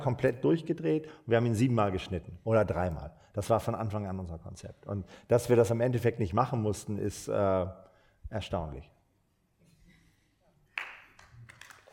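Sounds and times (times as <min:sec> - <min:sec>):
speech: 0:00.0 - 0:08.9
audience applause: 0:10.7 - 0:11.9.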